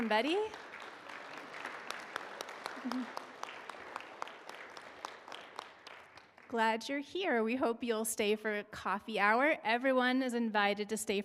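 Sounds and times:
speech: 0.0 - 0.7, 2.8 - 3.2, 6.5 - 11.2
room full of people clapping to welcome visitors: 0.0 - 6.8.

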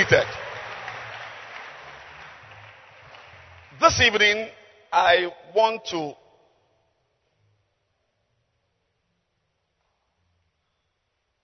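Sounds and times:
speech: 0.0 - 0.4, 3.9 - 6.2
congregation applause at a church service: 0.0 - 4.6.

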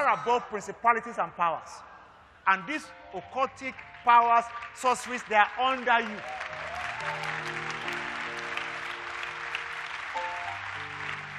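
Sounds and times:
speech: 0.1 - 7.7
sustained keyboard chords: 2.6 - 11.3
audience clapping: 3.5 - 11.3.

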